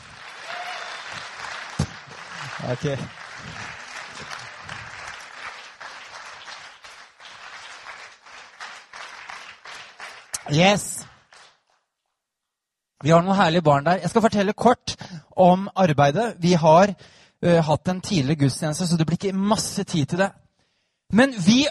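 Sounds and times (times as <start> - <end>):
audience applause: 0.0 - 11.7
speech: 2.6 - 3.2, 10.5 - 11.0, 13.0 - 20.4, 21.1 - 21.6.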